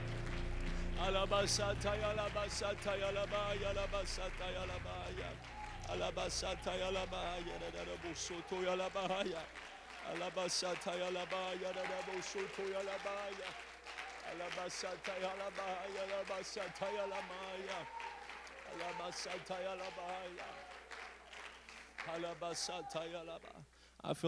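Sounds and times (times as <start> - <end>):
audience clapping hands: 0.0 - 23.7.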